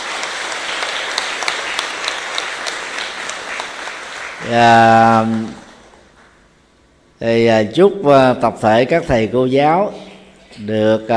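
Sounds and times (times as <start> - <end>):
audience applause: 0.0 - 6.0
speech: 4.5 - 5.6, 7.2 - 10.0, 10.6 - 11.1.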